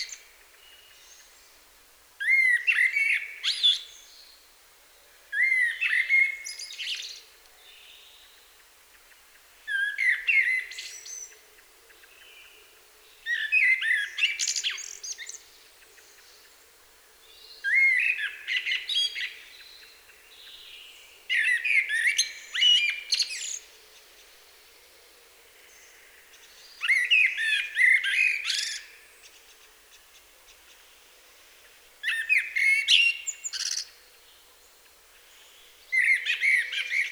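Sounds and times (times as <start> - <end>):
common blackbird song: 0.0 - 1.6, 2.2 - 37.1.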